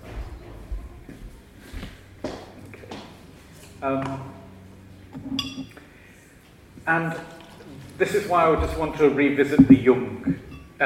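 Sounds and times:
low hum: 0.0 - 10.8
speech: 3.8 - 4.4, 6.9 - 7.3, 8.0 - 10.8
glass clinking: 5.2 - 5.8, 9.6 - 10.8
soft pouring: 5.4 - 10.7.

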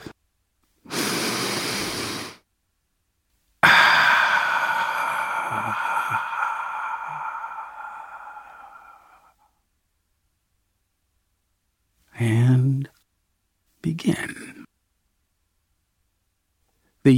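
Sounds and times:
deep breath drawn in: 0.9 - 2.4, 3.6 - 9.6
speech: 14.0 - 14.3.

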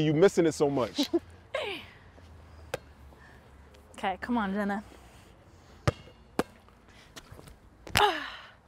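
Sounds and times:
speech: 0.0 - 1.3, 4.0 - 5.0
basketball thumps: 5.8 - 6.6.

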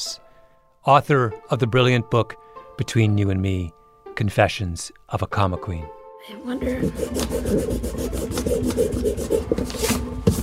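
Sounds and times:
speech: 0.8 - 10.4
eraser scrubbing on paper: 6.6 - 10.4.

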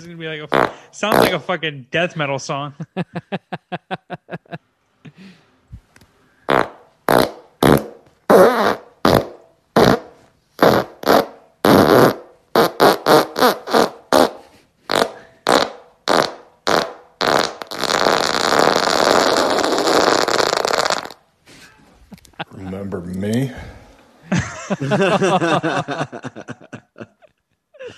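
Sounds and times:
speech: 0.0 - 4.1, 24.9 - 25.7
fart or queef sounds: 0.5 - 1.4, 6.5 - 21.3
laughter: 2.8 - 4.6, 21.8 - 23.1, 24.2 - 27.9.

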